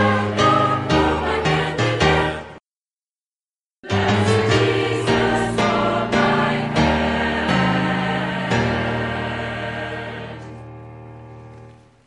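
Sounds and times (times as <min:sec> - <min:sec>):
choir singing: 0:00.0 - 0:02.6, 0:03.8 - 0:10.8.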